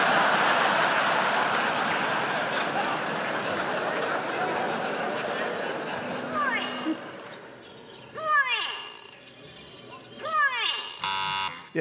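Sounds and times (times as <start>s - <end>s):
laughter: 0.0s - 8.1s
grey go-away bird call: 6.0s - 11.7s
insects buzzing: 6.3s - 11.7s.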